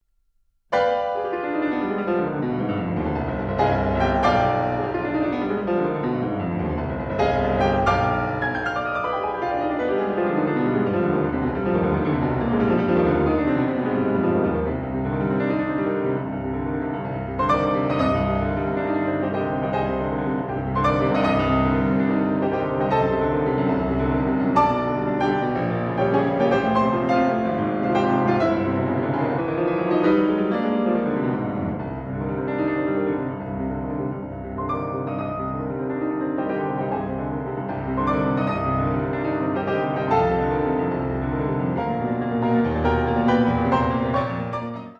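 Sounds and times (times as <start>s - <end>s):
fast piano etude in C minor: 0.7s - 44.9s.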